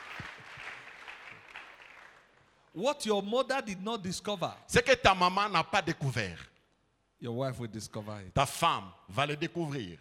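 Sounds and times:
audience applause at a spiritual revival church gathering: 0:00.0 - 0:02.4
speech: 0:02.8 - 0:06.5, 0:07.2 - 0:09.9.

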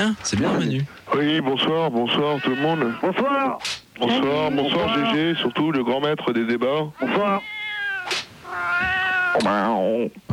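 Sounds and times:
speech: 0:00.0 - 0:07.5, 0:08.8 - 0:10.3
cat meowing: 0:02.1 - 0:03.4, 0:04.1 - 0:05.5, 0:07.0 - 0:09.9.

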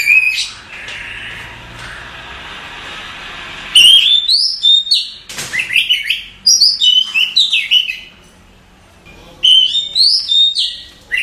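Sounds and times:
nightingale singing: 0:00.0 - 0:01.6, 0:03.8 - 0:08.2, 0:09.1 - 0:11.2.

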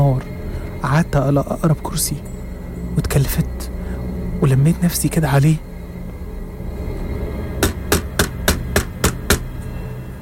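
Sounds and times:
low hum: 0:00.0 - 0:10.2
speech: 0:00.1 - 0:02.3, 0:03.0 - 0:03.8, 0:04.4 - 0:05.7
knocking on a wooden door: 0:07.6 - 0:09.5.

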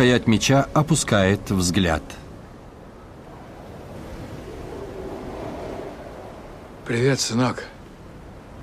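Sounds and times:
speech: 0:00.0 - 0:02.2, 0:06.9 - 0:07.7
wind: 0:00.0 - 0:08.6
ocean waves: 0:02.2 - 0:08.6.

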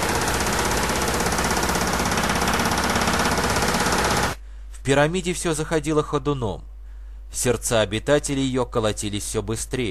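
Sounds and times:
police jackhammers drilling into concrete: 0:00.0 - 0:04.4
speech: 0:04.8 - 0:06.7, 0:07.3 - 0:09.8.

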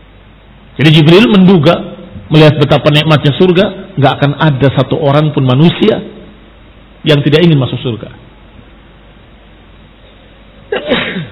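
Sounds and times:
speech: 0:00.8 - 0:06.2, 0:07.0 - 0:08.2
sneeze: 0:10.7 - 0:11.3.

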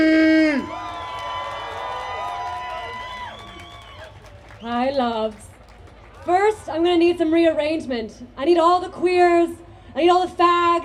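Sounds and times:
shouted call: 0:00.0 - 0:05.2
audience cheering to welcome a performer at a dance event in Amsterdam: 0:00.6 - 0:05.2
speech: 0:05.0 - 0:05.5, 0:06.2 - 0:10.8.

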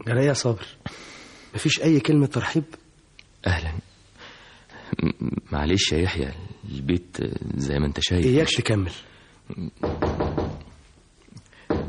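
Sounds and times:
speech: 0:00.0 - 0:02.8, 0:03.4 - 0:03.8, 0:04.9 - 0:10.1
knocking on a door in a radio drama: 0:09.8 - 0:10.7, 0:11.7 - 0:11.8.

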